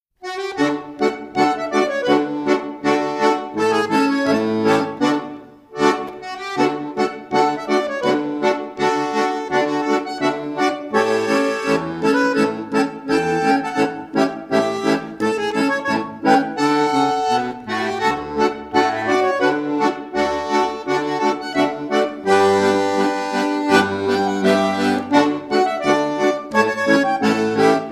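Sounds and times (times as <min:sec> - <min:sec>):
Rheinländer folk dance music: 0:00.2 - 0:27.9.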